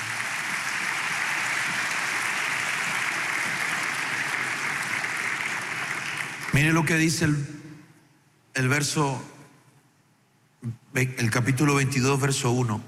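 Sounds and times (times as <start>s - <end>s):
audience clapping hands: 0.0s - 7.1s
speech: 6.5s - 7.5s, 8.6s - 9.3s, 10.6s - 12.8s.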